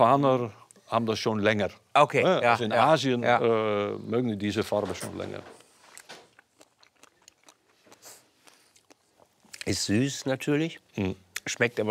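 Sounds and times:
speech: 0.0 - 5.6, 9.6 - 11.8
someone biting into and chewing a strawberry: 5.6 - 9.7.

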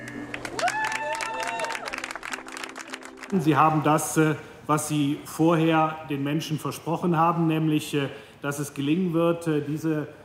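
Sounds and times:
crowd applauding at a reopening ceremony: 0.0 - 3.9
speech: 3.3 - 10.2.

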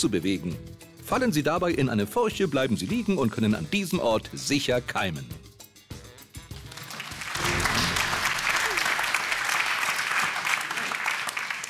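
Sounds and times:
speech: 0.0 - 5.5
audience clapping: 6.4 - 11.6.

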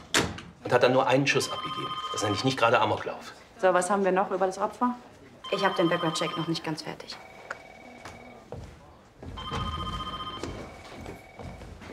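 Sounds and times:
speech: 0.7 - 7.3
telephone ringing: 1.3 - 2.9, 5.4 - 8.5, 9.4 - 11.9.

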